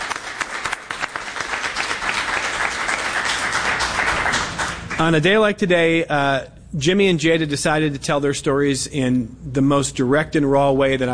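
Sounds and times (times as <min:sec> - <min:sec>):
crowd applauding: 0:00.0 - 0:05.2
speech: 0:05.0 - 0:11.1.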